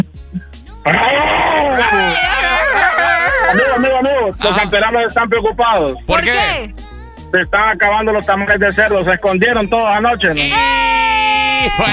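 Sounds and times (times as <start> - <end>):
speech: 0.0 - 2.3, 3.8 - 10.8, 11.6 - 11.9
laughter: 0.9 - 4.9, 9.6 - 11.9
person imitating a lion's roar: 1.6 - 4.9, 6.1 - 6.7, 10.4 - 11.9.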